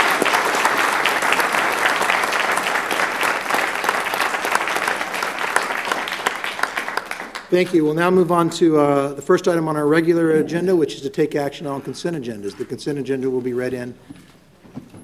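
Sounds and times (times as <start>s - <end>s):
audience applause: 0.0s - 11.4s
speech: 7.5s - 14.2s.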